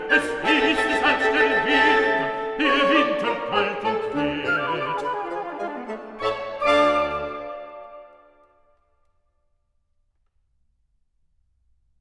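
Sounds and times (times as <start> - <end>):
person singing a song cycle: 0.0 - 5.8.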